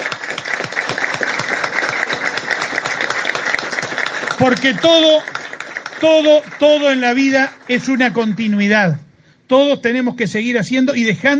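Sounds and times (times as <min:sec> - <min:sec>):
audience applause: 0:00.0 - 0:08.1
speech: 0:04.4 - 0:05.4, 0:06.0 - 0:11.3.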